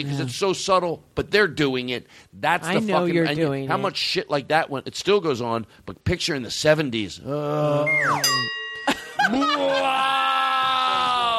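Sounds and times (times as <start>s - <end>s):
speech: 0.0s - 10.3s
voice imitating a sultry wolf whistle: 7.5s - 8.3s
laughter: 8.9s - 10.3s.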